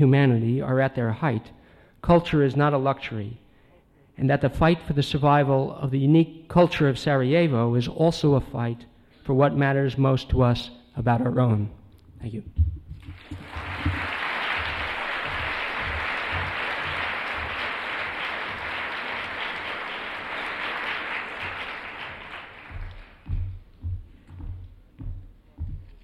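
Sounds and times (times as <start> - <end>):
speech: 0.0 - 3.4, 4.2 - 12.7
low voice speaking: 11.0 - 12.5
audience applause: 13.1 - 23.5.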